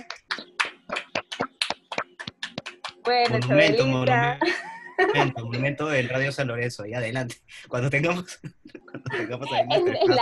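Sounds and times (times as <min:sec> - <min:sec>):
applause: 0:00.0 - 0:04.0
speech: 0:03.1 - 0:10.2
laughter: 0:03.3 - 0:10.2.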